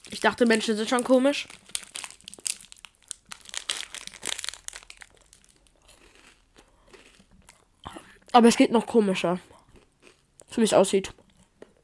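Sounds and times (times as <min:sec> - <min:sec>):
speech: 0:00.1 - 0:01.8, 0:08.4 - 0:09.6, 0:10.6 - 0:11.2
crunchy chewing on food: 0:01.5 - 0:08.4, 0:09.4 - 0:10.5.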